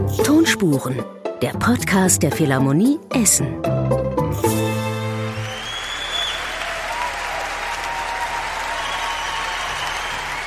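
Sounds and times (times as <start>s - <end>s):
speech: 0.2s - 4.6s
stormy applause in a concert hall: 5.1s - 10.4s.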